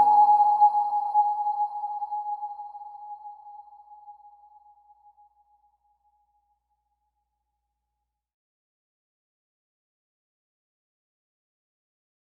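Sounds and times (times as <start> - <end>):
slow lullaby: 0.0 - 5.2.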